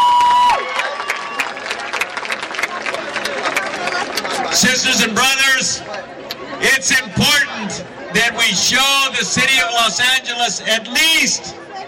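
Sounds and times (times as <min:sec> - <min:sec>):
crowd applause: 0:00.0 - 0:05.1
speech: 0:04.6 - 0:11.6.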